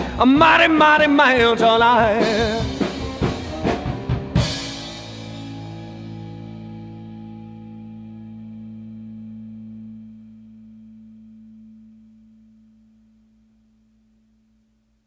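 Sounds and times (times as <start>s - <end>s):
isolated vocal microphone track with slap bounce echo: 0.0s - 3.3s.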